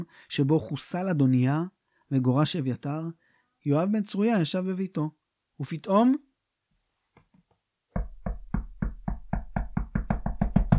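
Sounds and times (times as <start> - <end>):
speech: 0.0 - 6.3
knocking on a door: 7.9 - 10.7.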